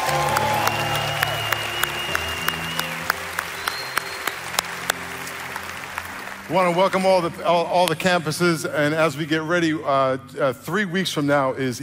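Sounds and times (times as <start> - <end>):
church congregation applauding: 0.0 - 8.3
speech: 6.5 - 11.8.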